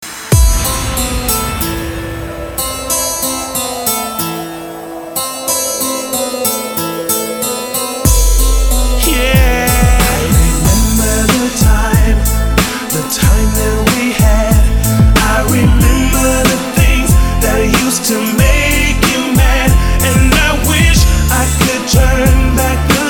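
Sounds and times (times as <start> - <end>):
electro music: 0.0 - 23.0.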